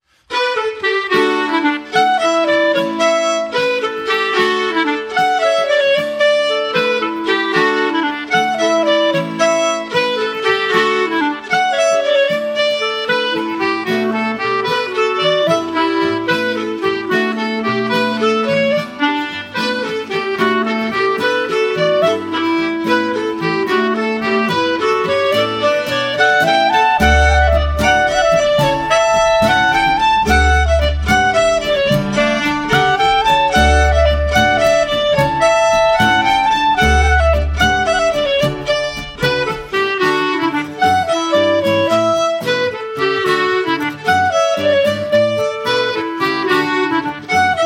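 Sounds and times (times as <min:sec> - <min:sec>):
hornpipe folk tune: 0:00.1 - 0:47.6.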